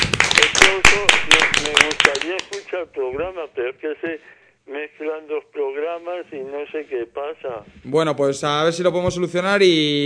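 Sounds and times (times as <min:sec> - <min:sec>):
studio applause from a few hands: 0:00.0 - 0:02.7
speech: 0:02.8 - 0:10.0.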